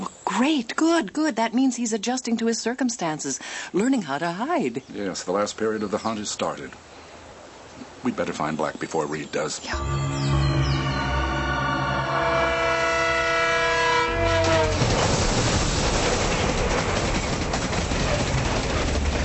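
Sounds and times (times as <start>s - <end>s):
speech: 0.4s - 6.9s, 8.0s - 10.4s
horn-like whine: 9.7s - 14.9s
train passing on elevated railway: 9.7s - 19.2s.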